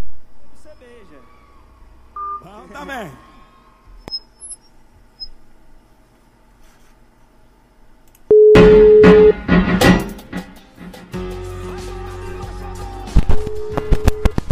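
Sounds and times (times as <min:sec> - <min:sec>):
telephone line tone as a radio host places a call: 0:08.3 - 0:09.4, 0:13.4 - 0:14.4.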